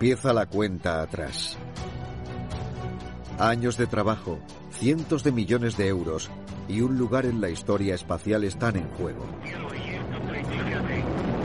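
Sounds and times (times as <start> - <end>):
speech: 0.0 - 1.9, 3.4 - 9.8
Proton rocket lifting off on the ExoMars mission: 9.3 - 11.4.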